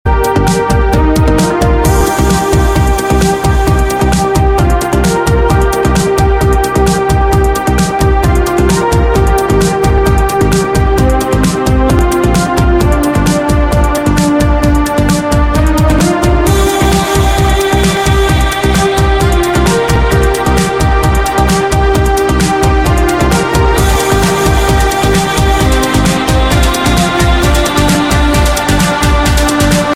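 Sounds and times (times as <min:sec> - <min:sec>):
instrumental music: 0:00.1 - 0:29.9.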